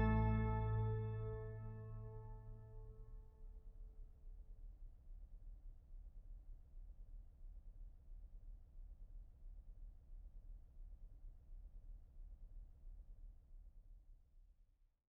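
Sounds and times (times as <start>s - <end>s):
organ toccatina: 0.0s - 2.2s.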